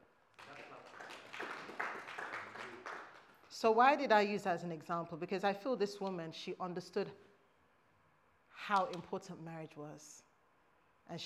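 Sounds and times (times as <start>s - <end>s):
audience clapping: 0.3s - 3.5s
speech: 3.6s - 7.3s, 8.6s - 10.3s, 11.1s - 11.2s.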